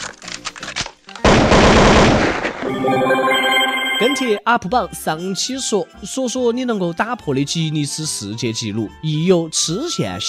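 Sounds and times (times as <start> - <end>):
rapid automatic fire: 1.3 - 2.6
gunfire sound effect shots: 1.3 - 2.7
speech: 2.7 - 3.3, 4.0 - 10.2.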